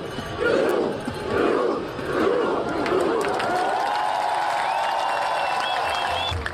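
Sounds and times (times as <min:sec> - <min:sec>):
huge outdoor street crowd cheering welcoming Norway football team: 0:00.0 - 0:06.3
crowd whistles: 0:04.6 - 0:06.5.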